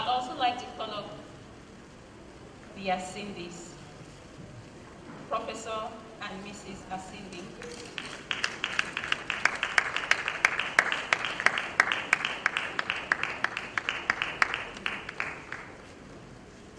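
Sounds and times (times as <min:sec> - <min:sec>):
speech: 0:02.8 - 0:03.8, 0:05.3 - 0:08.2
audience applause: 0:07.6 - 0:15.9.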